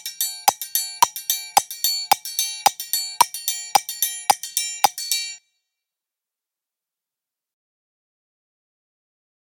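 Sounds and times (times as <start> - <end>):
triangle: 0.0 - 5.6.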